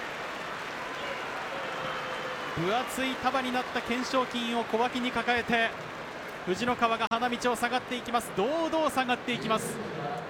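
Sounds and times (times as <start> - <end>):
large arena crowd applauding and cheering: 0.0 - 7.1
speech: 2.6 - 9.9.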